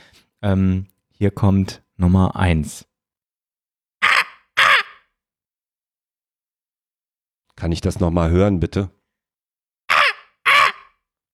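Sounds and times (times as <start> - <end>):
speech: 0.4 - 2.9, 7.6 - 9.0
human voice imitating a raven's caw: 4.0 - 5.1, 9.9 - 11.0.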